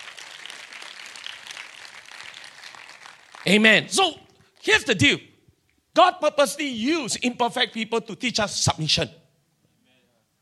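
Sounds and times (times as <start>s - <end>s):
audience clapping hands: 0.0s - 4.7s
speech: 3.4s - 5.3s, 6.0s - 9.2s.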